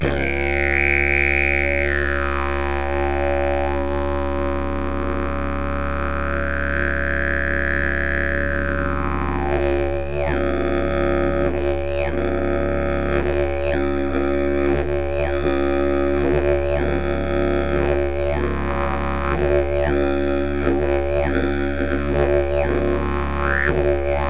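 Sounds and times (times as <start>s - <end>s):
wooden didgeridoo: 0.0s - 24.2s.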